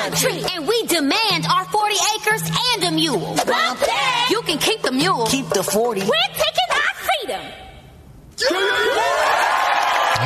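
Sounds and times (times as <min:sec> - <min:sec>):
speech: 0:00.0 - 0:06.6, 0:08.4 - 0:09.6
crowd cheering and whooping: 0:08.4 - 0:10.2.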